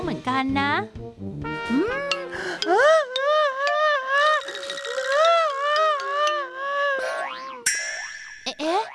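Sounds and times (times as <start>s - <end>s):
speech: 0.2s - 2.9s
springy cartoon boings: 2.0s - 8.9s
bright chimes: 7.7s - 8.9s.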